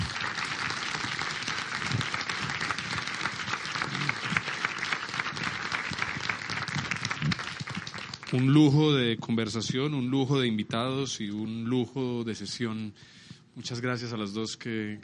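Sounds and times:
audience applause: 0.0s - 8.8s
speech: 8.4s - 15.0s.

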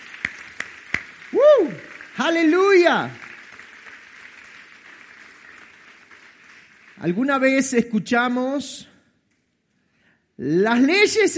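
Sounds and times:
crowd applauding: 0.0s - 8.2s
speech: 2.2s - 3.2s, 7.0s - 8.9s, 10.4s - 11.3s.

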